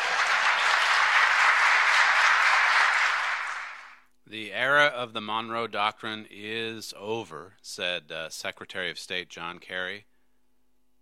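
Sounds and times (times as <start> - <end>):
audience applause: 0.0 - 4.0
speech: 4.6 - 10.1.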